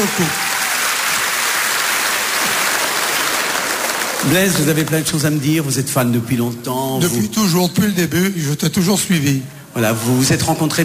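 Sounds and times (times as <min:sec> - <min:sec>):
speech: 0:00.0 - 0:00.5, 0:04.2 - 0:10.8
audience applause: 0:00.0 - 0:05.1.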